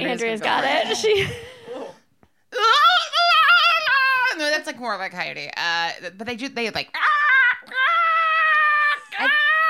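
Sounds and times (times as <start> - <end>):
speech: 0.1 - 1.5, 4.6 - 7.3, 9.2 - 9.4
person imitating a raccoon's scream: 2.6 - 4.4, 7.0 - 9.6.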